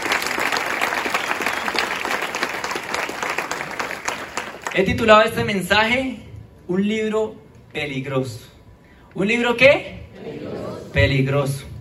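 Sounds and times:
audience applause: 0:00.0 - 0:04.8
speech: 0:04.8 - 0:08.5, 0:09.2 - 0:10.0, 0:10.9 - 0:11.7.

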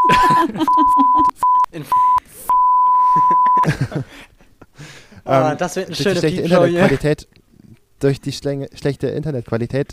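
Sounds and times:
laughter: 0:00.0 - 0:01.9, 0:03.0 - 0:04.7
speech: 0:00.4 - 0:02.0, 0:05.3 - 0:07.3, 0:08.0 - 0:09.9
censor bleep over spoken place name: 0:00.8 - 0:03.6.

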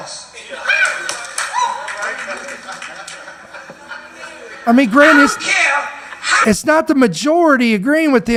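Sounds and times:
laughter: 0:00.5 - 0:06.5
audience applauding in played recording: 0:00.6 - 0:05.3
speech: 0:04.7 - 0:05.5, 0:06.5 - 0:08.3.

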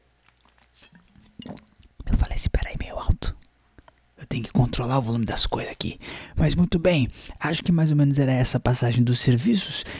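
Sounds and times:
person sipping and swallowing water: 0:00.0 - 0:04.8
speech: 0:04.8 - 0:09.9.

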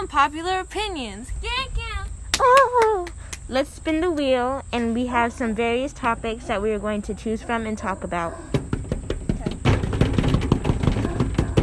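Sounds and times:
speech: 0:00.1 - 0:01.8, 0:02.4 - 0:08.6
dogs barking: 0:06.0 - 0:09.8, 0:10.6 - 0:11.6.

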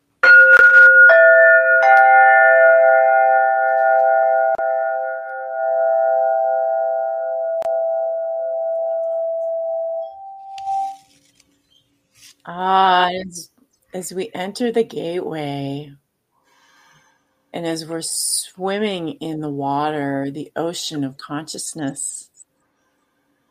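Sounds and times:
crystalline bell-like tones: 0:00.2 - 0:11.0
speech: 0:12.7 - 0:16.0, 0:17.5 - 0:22.3.

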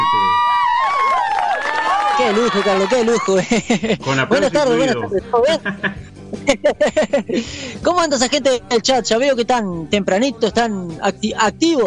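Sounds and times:
cheering voices: 0:00.0 - 0:03.4
crowd applause sound effect: 0:00.0 - 0:03.4
laughter: 0:02.1 - 0:07.6
speech: 0:02.2 - 0:11.8.

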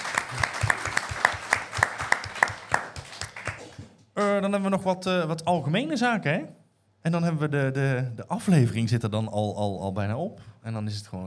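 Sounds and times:
steady evenly paced clapping: 0:00.0 - 0:04.0
speech: 0:04.2 - 0:11.2.

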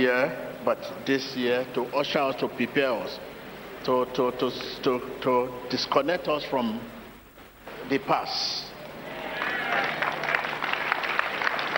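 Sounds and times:
speech: 0:00.0 - 0:07.0, 0:07.9 - 0:08.6
audience clapping: 0:09.1 - 0:11.7.

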